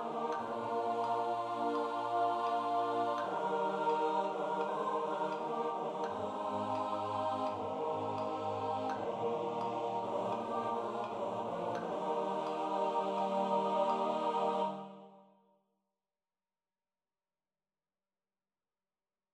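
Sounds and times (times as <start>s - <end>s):
SATB four-part choir singing: 0.0s - 15.3s.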